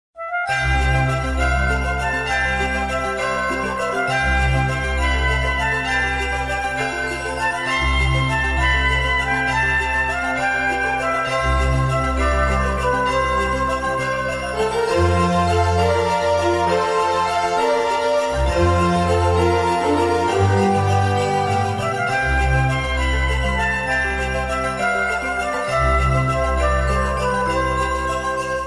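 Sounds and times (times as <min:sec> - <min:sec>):
Christmas ringtone: 0:00.3 - 0:28.6.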